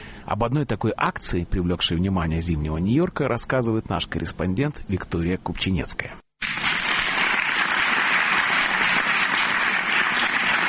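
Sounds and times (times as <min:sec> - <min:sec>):
speech: 0:00.3 - 0:06.2
audience applauding after a concert: 0:06.4 - 0:10.6.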